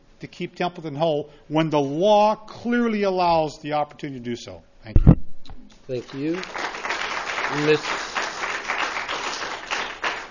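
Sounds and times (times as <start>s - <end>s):
speech: 0.2s - 5.1s, 5.9s - 6.6s, 7.5s - 8.0s
audience applause at a public meeting on keeping Templeton schools whole: 6.0s - 10.2s.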